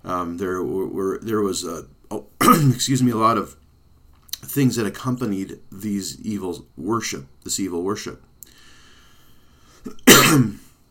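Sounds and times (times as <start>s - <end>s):
speech: 0.1s - 3.6s, 4.5s - 8.6s, 9.8s - 10.6s
cough: 2.4s - 2.8s, 9.9s - 10.7s.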